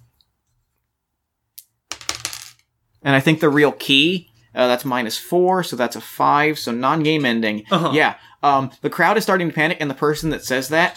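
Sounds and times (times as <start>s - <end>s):
dice rattling and clattering across a hard surface: 1.6s - 2.7s
speech: 3.0s - 10.9s.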